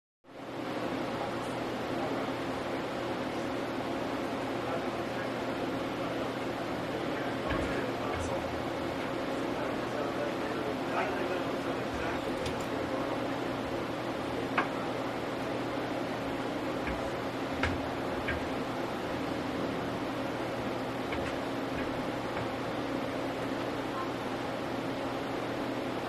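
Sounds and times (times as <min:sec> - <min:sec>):
computer room fans humming: 0:00.4 - 0:26.0.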